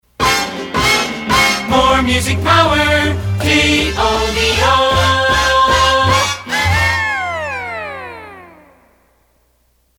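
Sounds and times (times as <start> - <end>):
timpani: 0.2 - 7.4.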